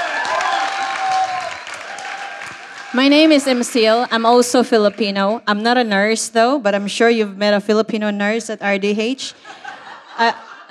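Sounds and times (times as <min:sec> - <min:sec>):
audience applause: 0:00.0 - 0:05.0
speech: 0:02.9 - 0:10.6
laughter: 0:09.3 - 0:10.6.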